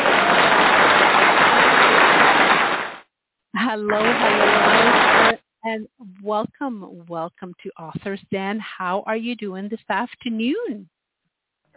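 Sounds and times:
round of applause: 0:00.0 - 0:03.0, 0:03.9 - 0:05.4
speech: 0:03.8 - 0:11.0.

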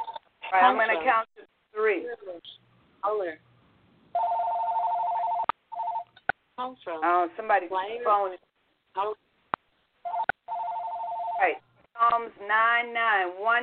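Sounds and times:
mobile phone ringing: 0:00.0 - 0:00.2, 0:04.2 - 0:06.2, 0:10.0 - 0:11.6
speech: 0:00.5 - 0:03.5, 0:06.6 - 0:09.2, 0:11.4 - 0:13.6.

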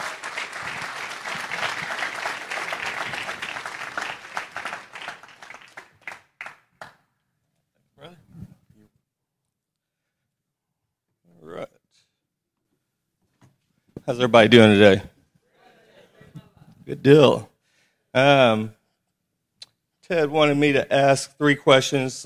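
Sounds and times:
audience applause: 0:00.0 - 0:07.0
speech: 0:14.1 - 0:15.1, 0:17.0 - 0:17.5, 0:18.1 - 0:18.8, 0:20.1 - 0:22.2.

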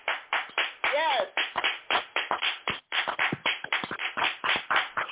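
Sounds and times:
round of applause: 0:00.0 - 0:05.0
speech: 0:01.0 - 0:01.6.

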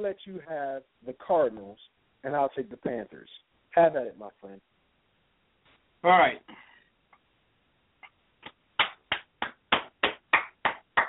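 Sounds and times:
speech: 0:00.0 - 0:04.7, 0:06.0 - 0:06.7
hand clapping: 0:08.0 - 0:11.0.

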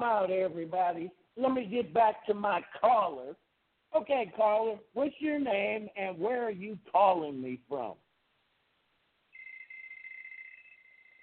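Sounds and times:
speech: 0:00.0 - 0:08.0
phone ringtone: 0:09.3 - 0:11.2.

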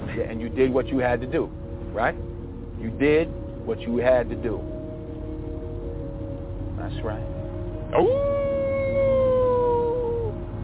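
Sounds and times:
speech: 0:00.2 - 0:04.8, 0:06.8 - 0:08.5
person imitating a wolf howl: 0:07.9 - 0:10.5.

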